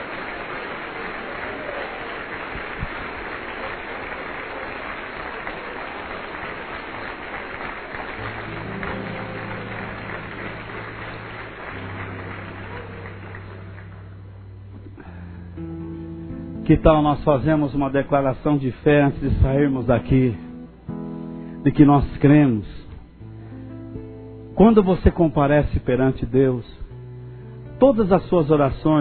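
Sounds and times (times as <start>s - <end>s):
audience applause: 0.0s - 14.4s
speech: 16.7s - 20.4s, 21.6s - 22.7s, 24.6s - 26.8s, 27.8s - 28.9s.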